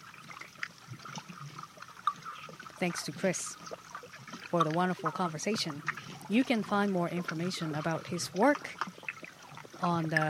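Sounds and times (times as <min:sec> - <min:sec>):
underwater recording of trickling and gurgling water: 0:00.0 - 0:10.2
speech: 0:02.8 - 0:03.9, 0:04.5 - 0:08.9, 0:09.8 - 0:10.2.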